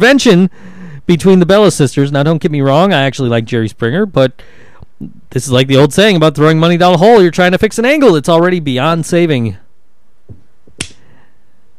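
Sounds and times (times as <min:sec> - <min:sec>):
speech: 0:00.0 - 0:09.6
slap on the forehead: 0:10.8 - 0:11.0.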